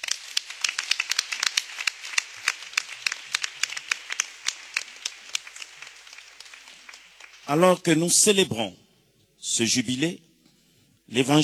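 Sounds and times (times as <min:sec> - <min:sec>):
congregation clapping in a church for a priest's golden jubilee: 0:00.0 - 0:08.4
speech: 0:07.5 - 0:08.8, 0:09.5 - 0:10.3, 0:11.1 - 0:11.4.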